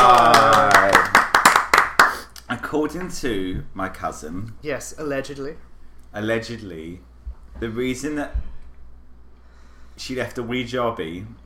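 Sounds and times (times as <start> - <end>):
round of applause: 0.0 - 2.3
speech: 2.8 - 8.5, 10.0 - 11.4.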